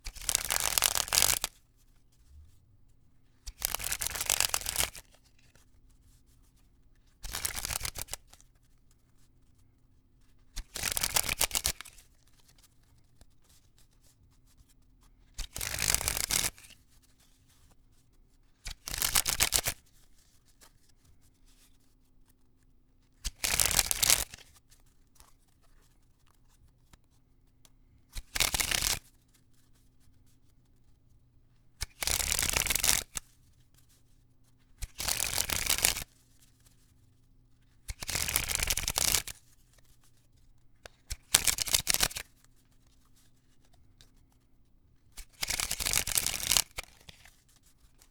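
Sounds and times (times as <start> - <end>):
riffling deck of cards: 0.1 - 1.5, 3.5 - 5.0, 7.3 - 8.1, 10.8 - 11.9, 15.6 - 16.5, 18.9 - 19.7, 23.4 - 24.4, 28.2 - 29.0, 31.8 - 33.2, 34.9 - 36.0, 37.9 - 39.3, 41.1 - 42.2, 45.2 - 47.0.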